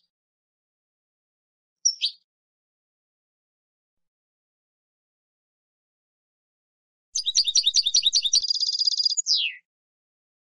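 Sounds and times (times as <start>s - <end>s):
European goldfinch song: 1.8s - 2.2s, 7.2s - 9.7s.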